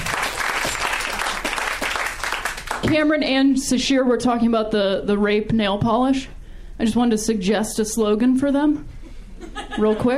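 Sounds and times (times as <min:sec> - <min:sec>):
crowd applause: 0:00.0 - 0:02.9
speech: 0:02.8 - 0:08.9, 0:09.8 - 0:10.1
laughter: 0:09.4 - 0:10.1.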